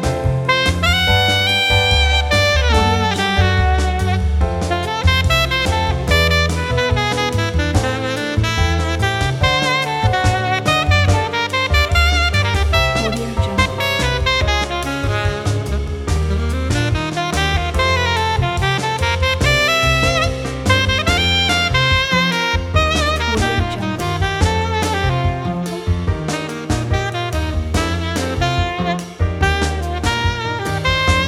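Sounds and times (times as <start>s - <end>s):
warm bossa nova saxophone: 0.0s - 31.2s.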